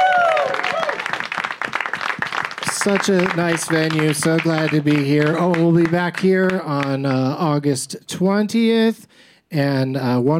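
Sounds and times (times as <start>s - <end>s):
person whooping: 0.0s - 1.1s
audience applause: 0.0s - 7.2s
speech: 2.8s - 10.3s.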